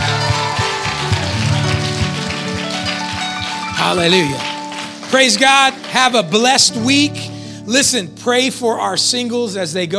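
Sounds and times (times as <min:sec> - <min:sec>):
audience clapping: 0:00.0 - 0:07.2
speech: 0:03.9 - 0:04.5, 0:05.1 - 0:09.9.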